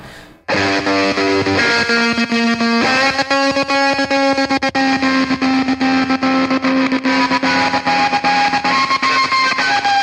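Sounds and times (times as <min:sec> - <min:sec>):
heavily distorted fuzz-box guitar track with effects and sampled sounds: 0:00.5 - 0:10.0.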